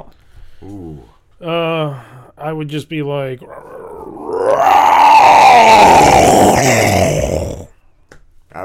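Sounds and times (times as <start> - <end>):
speech: 0.1 - 3.7, 5.5 - 7.6
person imitating a tiger roar: 3.4 - 7.7.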